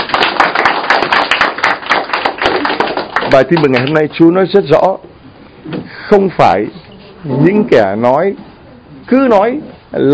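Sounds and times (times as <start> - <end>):
crowd applauding: 0.0 - 4.0
speech: 3.3 - 10.1.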